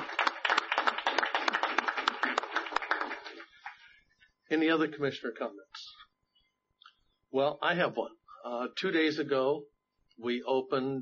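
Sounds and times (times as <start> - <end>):
round of applause: 0.0 - 3.9
speech: 4.5 - 5.8, 7.3 - 10.9.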